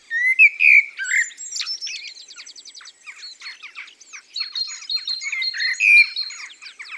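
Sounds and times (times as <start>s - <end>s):
common blackbird song: 0.0s - 6.9s.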